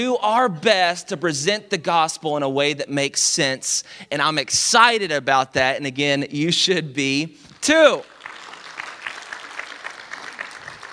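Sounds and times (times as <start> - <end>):
speech: 0.0 - 8.1
quiet golf clap style applause from a crowd: 7.6 - 10.9.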